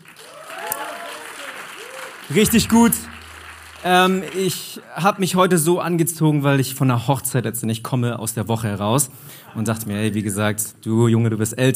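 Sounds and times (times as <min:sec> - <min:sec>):
audience applause: 0:00.0 - 0:05.3
speech: 0:02.3 - 0:03.2, 0:03.8 - 0:11.7.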